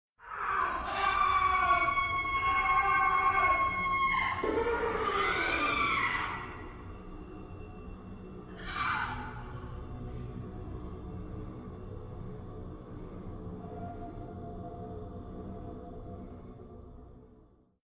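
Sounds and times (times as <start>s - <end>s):
person screaming: 0.3s - 6.6s.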